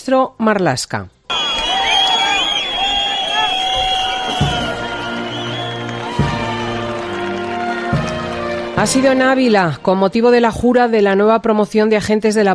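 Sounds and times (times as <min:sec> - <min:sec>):
speech: 0:00.1 - 0:01.2, 0:08.8 - 0:12.5
angry shouting: 0:01.3 - 0:08.8
crowd whistling: 0:01.3 - 0:08.9.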